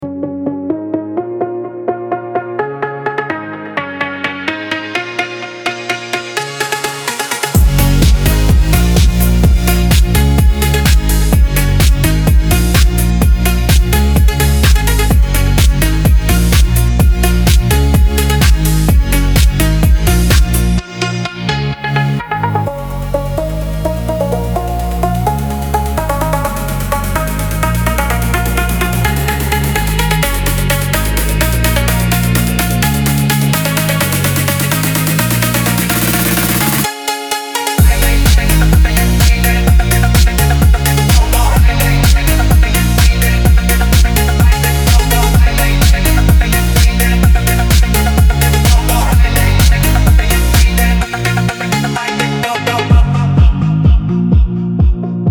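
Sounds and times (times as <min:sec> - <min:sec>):
phonk music: 0:02.0 - 0:55.2.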